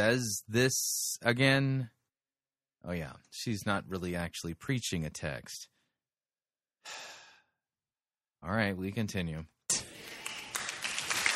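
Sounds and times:
speech: 0.0 - 2.0, 2.8 - 5.8, 6.8 - 7.2, 8.4 - 10.0
audience clapping: 9.8 - 11.3.

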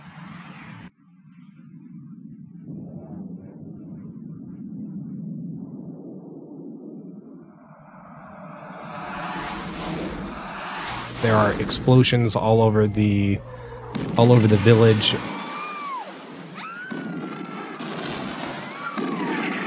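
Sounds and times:
jet aircraft roaring overhead: 7.8 - 19.6
speech: 11.2 - 13.6, 14.2 - 15.3.

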